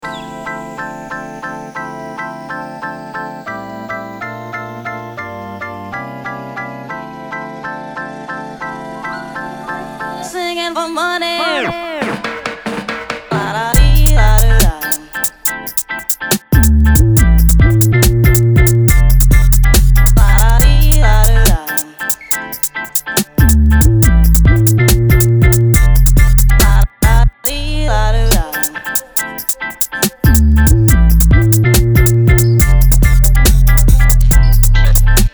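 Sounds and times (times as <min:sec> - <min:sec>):
Gypsy drill music: 0:00.0 - 0:35.3.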